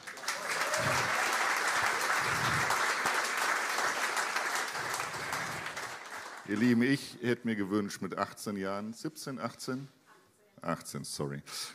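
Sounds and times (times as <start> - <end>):
audience applause: 0.0 - 6.9
speech: 6.5 - 10.0, 10.6 - 11.7.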